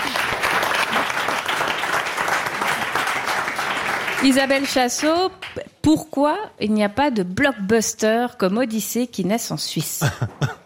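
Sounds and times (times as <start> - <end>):
audience applause: 0.0 - 5.5
speech: 4.2 - 10.6.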